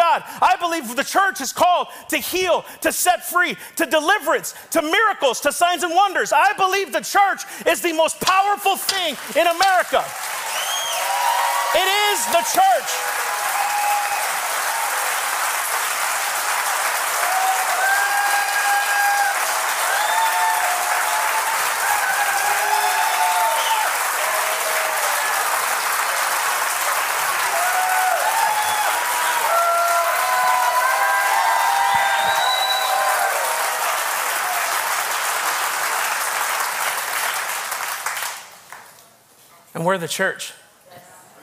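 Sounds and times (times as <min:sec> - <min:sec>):
speech: 0:00.2 - 0:10.6, 0:11.8 - 0:13.2, 0:39.8 - 0:40.6
audience applause: 0:08.4 - 0:38.9
cheers and whistles: 0:10.4 - 0:15.0, 0:17.2 - 0:25.5, 0:27.5 - 0:34.0.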